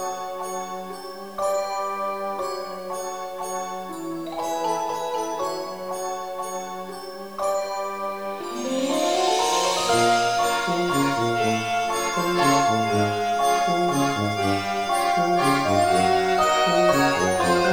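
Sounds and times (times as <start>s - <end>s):
clown music: 0.0s - 17.7s.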